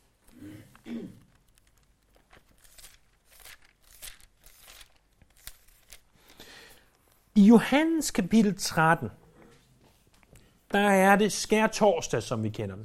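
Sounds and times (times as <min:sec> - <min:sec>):
Bible pages being turned: 0:00.0 - 0:06.4
speech: 0:07.4 - 0:09.2, 0:10.8 - 0:12.8.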